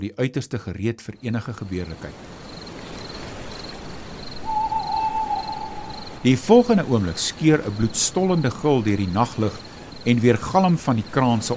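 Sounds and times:
speech: 0:00.0 - 0:02.5, 0:06.2 - 0:11.5
owl hooting: 0:04.4 - 0:06.4.

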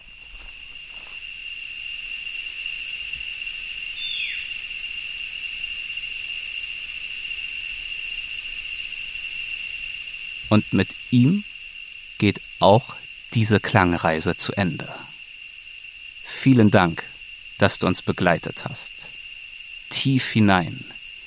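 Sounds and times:
rainforest crickets and cicadas droning at dusk: 0:00.0 - 0:21.2
descending whistle: 0:04.0 - 0:04.5
speech: 0:10.5 - 0:11.5, 0:12.2 - 0:15.1, 0:16.4 - 0:19.0, 0:19.9 - 0:20.9.

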